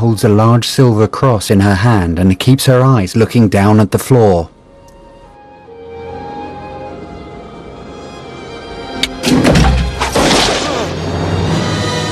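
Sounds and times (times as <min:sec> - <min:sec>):
speech: 0:00.0 - 0:04.6
heavy thumps and crashes: 0:09.2 - 0:10.9
gunshot: 0:09.2 - 0:11.0.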